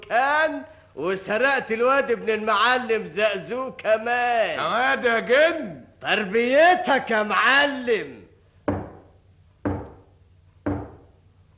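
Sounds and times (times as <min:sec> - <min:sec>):
speech: 0:00.1 - 0:08.2
heavy knocking on a door: 0:08.7 - 0:11.1.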